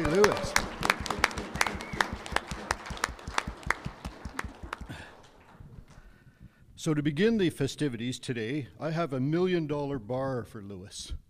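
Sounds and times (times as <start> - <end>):
audience applauding: 0.0 - 6.0
speech: 6.8 - 11.2.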